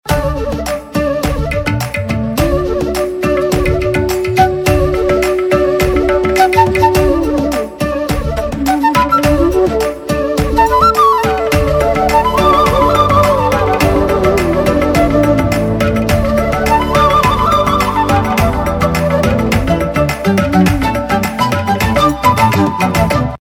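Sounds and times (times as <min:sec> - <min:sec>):
flute ringtone: 0:00.1 - 0:23.3.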